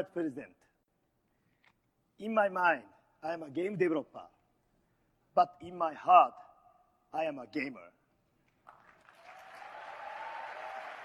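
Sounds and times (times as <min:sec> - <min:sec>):
speech: 0:00.0 - 0:00.7, 0:02.2 - 0:04.4, 0:05.4 - 0:06.4, 0:07.1 - 0:08.0
crowd applause: 0:08.7 - 0:11.0.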